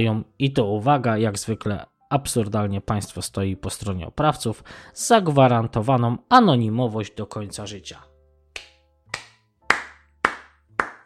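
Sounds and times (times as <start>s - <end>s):
speech: 0.0s - 8.1s
slow deliberate sarcastic hand clapping: 8.6s - 11.0s.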